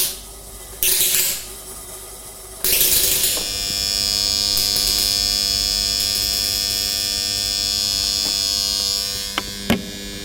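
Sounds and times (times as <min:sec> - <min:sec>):
battery charger power supply electric hum and buzz: 0:00.0 - 0:10.2
thin high whine of a battery charger power supply: 0:02.5 - 0:10.2.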